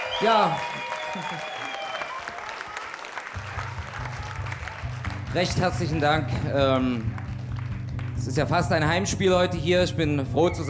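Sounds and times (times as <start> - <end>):
audience applause: 0.0 - 8.5
speech: 0.2 - 1.6, 5.3 - 7.2, 8.2 - 10.6.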